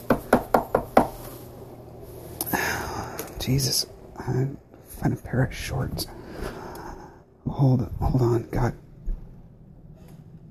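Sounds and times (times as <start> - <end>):
knocking at a door: 0.1 - 1.2
speech: 3.4 - 6.2, 7.6 - 8.8.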